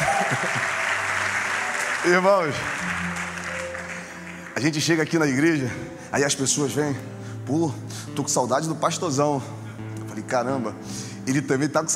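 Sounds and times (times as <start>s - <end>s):
laughter: 0.0s - 1.2s
audience clapping: 0.0s - 5.2s
speech: 2.0s - 2.9s, 4.6s - 9.6s, 10.2s - 11.9s.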